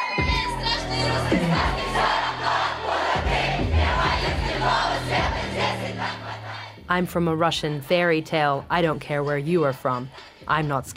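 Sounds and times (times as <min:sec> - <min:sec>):
concert crowd singing and shouting along to a song: 0:00.1 - 0:06.9
sustained tonal music: 0:00.2 - 0:06.9
throbbing low bass beats: 0:00.2 - 0:09.8
speech: 0:06.9 - 0:10.9.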